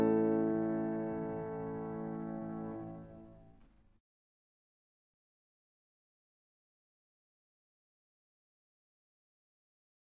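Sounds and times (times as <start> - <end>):
bowed violin rhythm with three fingers: 0.0 - 3.6.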